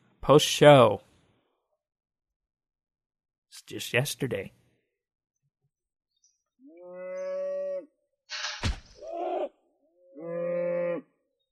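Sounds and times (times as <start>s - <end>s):
speech: 0.2s - 1.1s, 3.7s - 4.6s
cow mooing: 6.7s - 7.9s, 10.1s - 11.2s.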